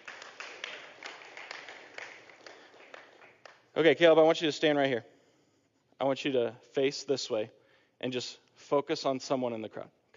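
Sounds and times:
audience applause: 0:00.0 - 0:03.6
speech: 0:03.8 - 0:05.1, 0:06.0 - 0:10.0.

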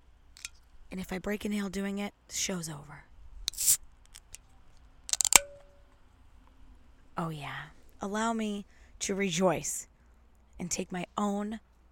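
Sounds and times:
speech: 0:01.0 - 0:03.1, 0:07.2 - 0:09.9, 0:10.6 - 0:11.7
beer can cracking open: 0:03.5 - 0:04.4, 0:05.1 - 0:05.6.

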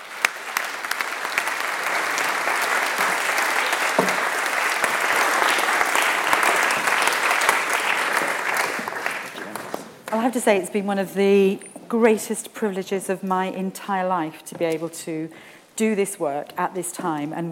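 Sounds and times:
audience applause: 0:00.0 - 0:10.1
speech: 0:10.3 - 0:17.5.

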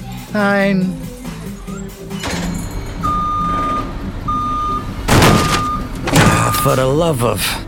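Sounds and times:
speech: 0:00.3 - 0:01.1, 0:06.6 - 0:07.6
milk delivery truck engine rumble: 0:01.3 - 0:07.6
milk delivery truck reversing beeps: 0:03.0 - 0:04.9, 0:05.5 - 0:06.9.

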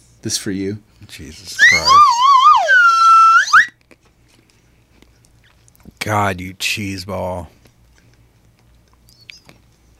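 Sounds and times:
speech: 0:00.2 - 0:02.3, 0:06.1 - 0:07.6
slide whistle: 0:01.6 - 0:03.7.

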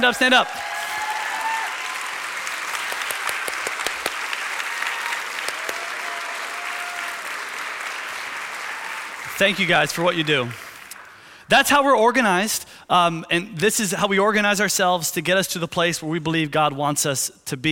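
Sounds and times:
speech: 0:00.0 - 0:00.7, 0:09.4 - 0:10.6, 0:11.5 - 0:17.7
audience applauding: 0:00.0 - 0:11.4.

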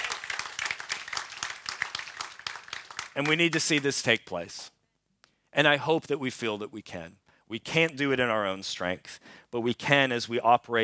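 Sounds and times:
audience clapping: 0:00.0 - 0:04.2
speech: 0:03.2 - 0:04.8, 0:05.6 - 0:10.8.

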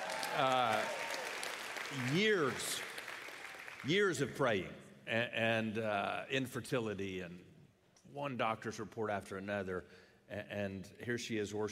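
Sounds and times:
people cheering: 0:00.0 - 0:04.0
crowd clapping: 0:00.0 - 0:04.2
speech: 0:00.3 - 0:01.1, 0:01.9 - 0:02.9, 0:03.8 - 0:07.5, 0:08.1 - 0:11.7.

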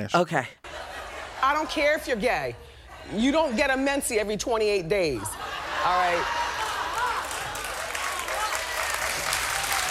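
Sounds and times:
speech: 0:00.0 - 0:00.6, 0:01.4 - 0:06.4
laughter: 0:00.6 - 0:03.5, 0:05.2 - 0:09.4
audience applause in played clip: 0:06.1 - 0:09.8.

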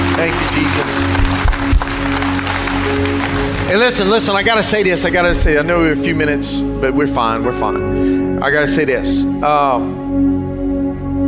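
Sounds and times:
audience applause: 0:00.0 - 0:04.9
speech: 0:00.2 - 0:02.3, 0:03.0 - 0:10.4.

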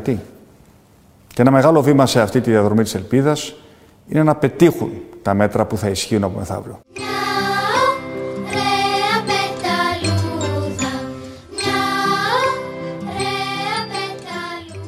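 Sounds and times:
speech: 0:00.0 - 0:00.4, 0:01.4 - 0:07.0
short cheerful song with bouncing melody over rhythmic bass line: 0:06.9 - 0:14.8.

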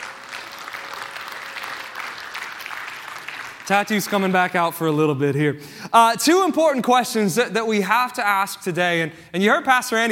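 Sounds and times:
audience round of applause: 0:00.0 - 0:04.7
speech: 0:03.7 - 0:10.1.

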